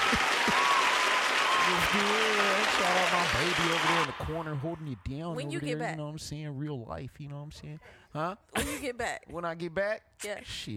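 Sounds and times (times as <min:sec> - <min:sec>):
audience applause: 0:00.0 - 0:04.6
speech: 0:01.7 - 0:10.7.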